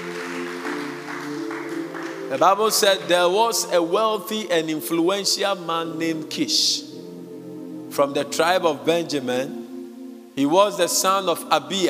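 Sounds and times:
audience clapping hands: 0.0s - 3.2s
sustained musical chord: 0.0s - 11.8s
speech: 2.3s - 7.0s, 8.0s - 9.6s, 10.4s - 11.8s.

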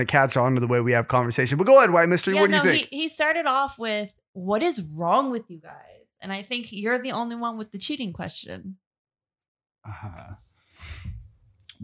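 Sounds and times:
speech: 0.0s - 8.8s, 9.8s - 11.2s
person taking a deep breath: 10.7s - 11.2s.

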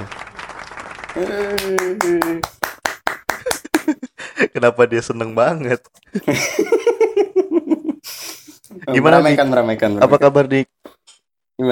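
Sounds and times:
crowd applauding: 0.0s - 4.0s
speech: 1.2s - 2.5s, 4.6s - 6.8s, 8.9s - 10.9s
laughter: 3.3s - 4.6s, 6.1s - 8.0s.

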